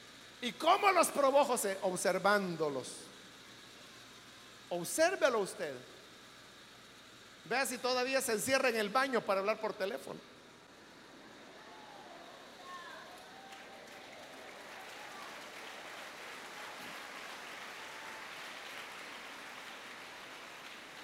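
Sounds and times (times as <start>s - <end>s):
speech: 0.4s - 3.1s, 4.7s - 6.0s, 7.4s - 10.3s
audience applauding: 12.6s - 21.0s.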